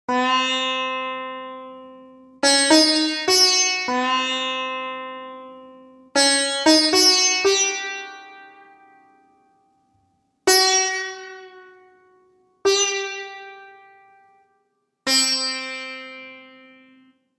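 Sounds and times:
Indian sitar: 0.1 - 17.3.

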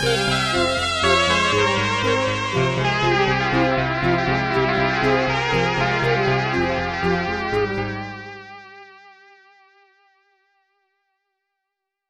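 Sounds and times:
Elektron Digitone synthesizer keys: 0.0 - 8.8.

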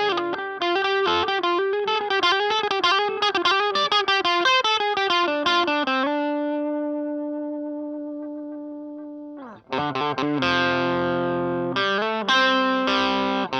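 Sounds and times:
Gibson Les Paul Studio electric guitar on bridge pickup: 0.0 - 13.5.

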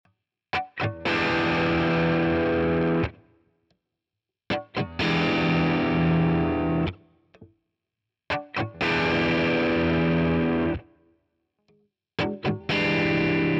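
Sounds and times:
Nashville Tele push-pull overdrive electric guitar: 0.6 - 3.2, 4.5 - 7.0, 8.3 - 10.9, 12.2 - 13.5.

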